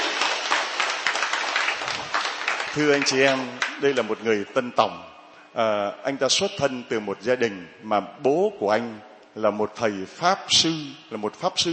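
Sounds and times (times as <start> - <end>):
church congregation applauding: 0.0 - 4.1
speech: 2.8 - 11.7.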